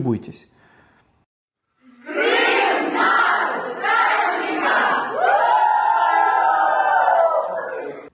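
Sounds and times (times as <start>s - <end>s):
speech: 0.0s - 0.6s
crowd of children shouting and laughing: 1.9s - 8.1s.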